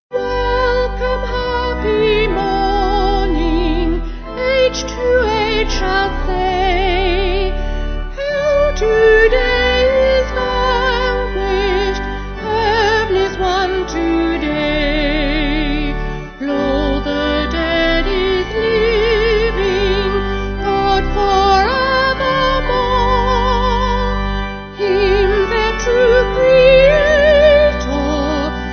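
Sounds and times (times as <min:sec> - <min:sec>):
vocal organ: 0:00.1 - 0:28.7.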